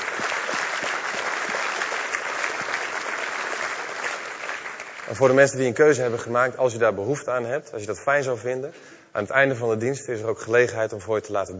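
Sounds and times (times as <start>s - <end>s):
church audience applause: 0.0s - 5.6s
speech: 5.1s - 11.5s.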